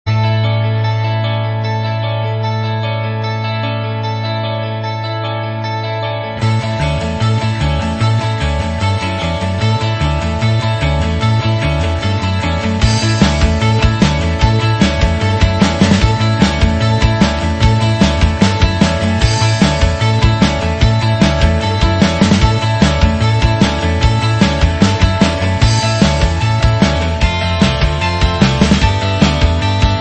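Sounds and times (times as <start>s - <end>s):
alternative rock music: 0.1s - 29.9s.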